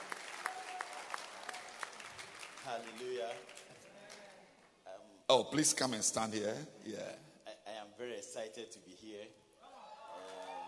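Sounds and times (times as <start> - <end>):
audience clapping hands: 0.0 - 4.8
speech: 2.6 - 3.7, 5.3 - 7.3, 8.0 - 9.4.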